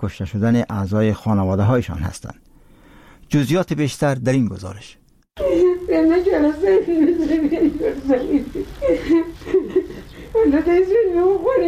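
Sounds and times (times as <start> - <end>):
speech: 0.0 - 2.5, 3.3 - 9.7, 10.4 - 11.6
grieving mother crying: 5.4 - 11.6.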